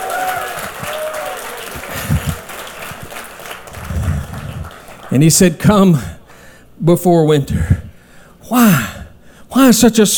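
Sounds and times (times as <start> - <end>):
faint whoops: 0.0 - 2.4
crowd hand clapping: 0.0 - 5.7
speech: 5.1 - 6.2, 6.8 - 7.8, 8.5 - 8.9, 9.6 - 10.1.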